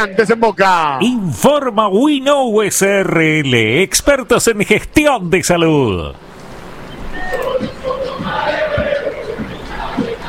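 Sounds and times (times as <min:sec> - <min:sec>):
speech: 0:00.0 - 0:06.2
crowd chanting: 0:07.1 - 0:10.2.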